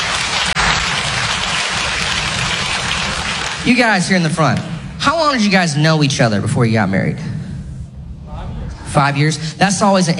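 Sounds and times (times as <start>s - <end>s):
audience clapping: 0.0s - 4.8s
speech: 3.6s - 7.3s, 8.9s - 10.1s.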